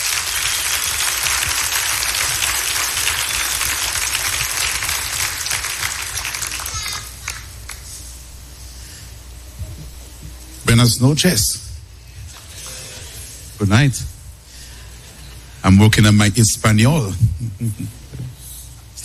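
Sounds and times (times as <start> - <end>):
audience applause: 0.0 - 7.8
speech: 10.8 - 11.7, 13.6 - 14.1, 15.6 - 18.0.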